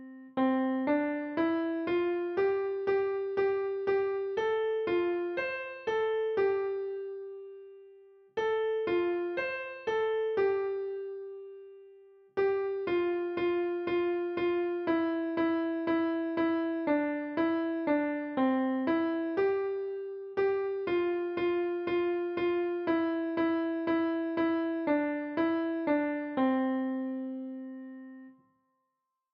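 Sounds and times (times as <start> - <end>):
piano piece: 0.0 - 11.8, 12.4 - 28.3.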